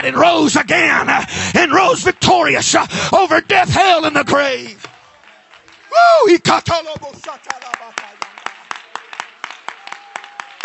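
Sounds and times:
speech: 0:00.1 - 0:04.9, 0:05.9 - 0:08.1
crowd clapping hands in rhythm: 0:04.8 - 0:10.6.

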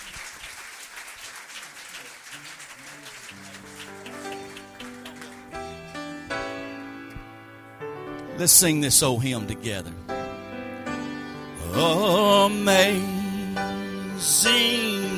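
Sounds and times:
audience clapping hands: 0:00.0 - 0:06.5
sustained keyboard chords: 0:03.4 - 0:15.1
speech: 0:08.4 - 0:10.1, 0:11.8 - 0:13.2, 0:14.2 - 0:15.1.

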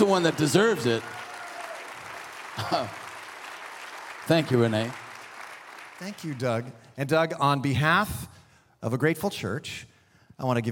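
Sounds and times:
audience applauding: 0:00.0 - 0:06.9
speech: 0:00.1 - 0:01.2, 0:02.6 - 0:03.0, 0:04.3 - 0:05.0, 0:06.0 - 0:10.6.

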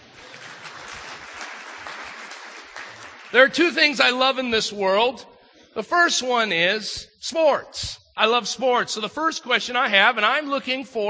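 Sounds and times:
crowd clapping: 0:00.0 - 0:04.2
speech: 0:03.3 - 0:11.0.

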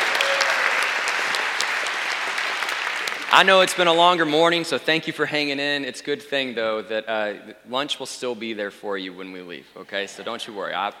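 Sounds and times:
audience applause: 0:00.0 - 0:04.0
speech: 0:03.3 - 0:10.9.

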